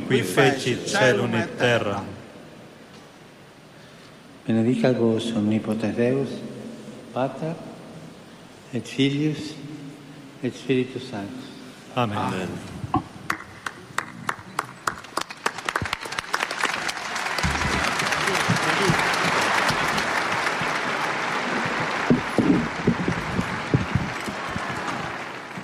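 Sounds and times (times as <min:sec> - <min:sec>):
speech: 0:00.1 - 0:02.2, 0:04.5 - 0:07.7, 0:08.7 - 0:09.7, 0:10.4 - 0:13.0
large outdoor crowd applause on a public square: 0:13.3 - 0:25.6.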